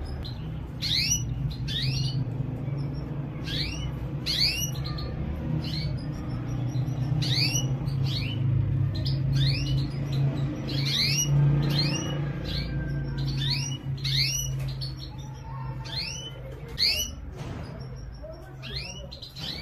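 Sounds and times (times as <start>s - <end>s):
domestic canary chirps: 0.0s - 19.6s.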